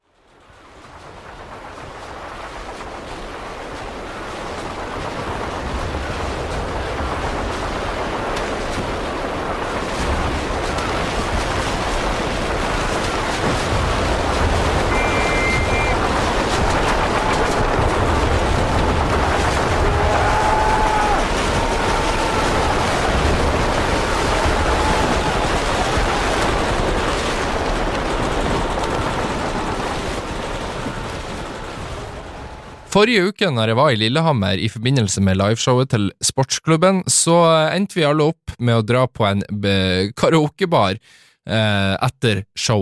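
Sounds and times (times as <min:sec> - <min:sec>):
simulated World War I battlefield: 0:00.6 - 0:34.1
speech: 0:33.0 - 0:42.8.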